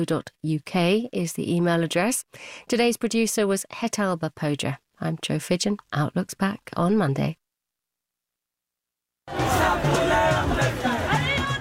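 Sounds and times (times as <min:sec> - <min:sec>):
speech: 0:00.0 - 0:07.4, 0:09.3 - 0:11.0
large protest crowd roaring and chanting: 0:09.3 - 0:11.6
people shouting: 0:09.3 - 0:11.6.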